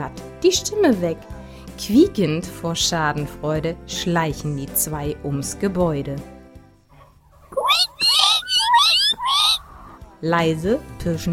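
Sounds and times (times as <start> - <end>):
speech: 0.0 - 6.3, 10.2 - 11.3
cat meowing: 7.6 - 9.8.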